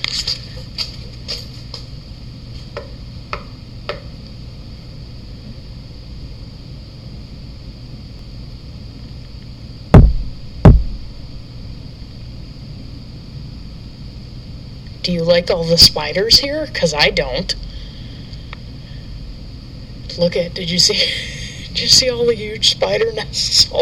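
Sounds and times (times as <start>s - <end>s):
low hum: 0.0s - 23.8s
knocking on a wooden support beam: 10.0s - 11.0s
speech: 15.2s - 17.6s, 20.2s - 23.8s.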